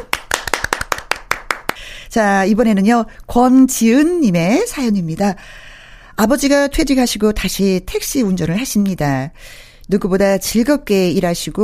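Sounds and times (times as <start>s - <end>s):
hand clapping: 0.0s - 1.8s
speech: 2.2s - 5.6s, 6.2s - 11.6s.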